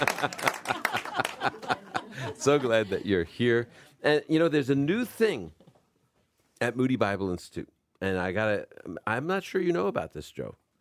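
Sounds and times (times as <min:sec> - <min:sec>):
speech: 0:00.0 - 0:00.6, 0:02.4 - 0:05.6, 0:06.6 - 0:10.6
studio audience clapping: 0:00.0 - 0:02.6
laughter: 0:00.0 - 0:03.6.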